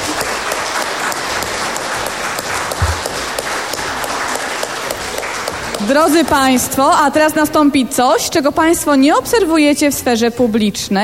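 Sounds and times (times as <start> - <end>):
audience applause: 0.0 - 6.7
speech: 5.8 - 11.0.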